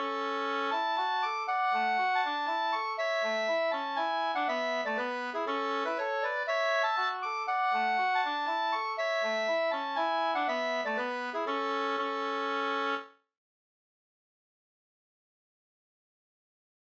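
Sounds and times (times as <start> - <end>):
polska folk dance tune: 0.0 - 13.1.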